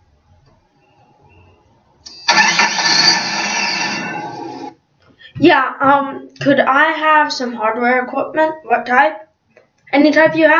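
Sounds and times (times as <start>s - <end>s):
car engine starting and running: 2.1s - 4.7s
speech: 5.4s - 9.2s, 9.9s - 10.5s.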